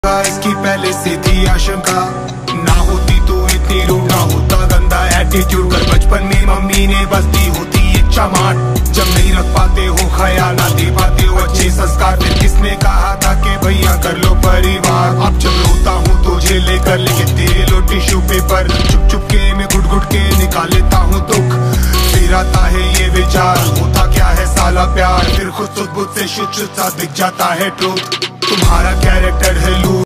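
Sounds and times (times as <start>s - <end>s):
Hindi rap ringtone: 0.0s - 30.0s.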